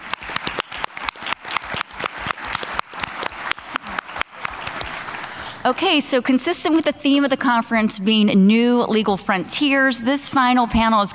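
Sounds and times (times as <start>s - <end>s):
audience applause: 0.0s - 5.6s
speech: 5.6s - 11.1s.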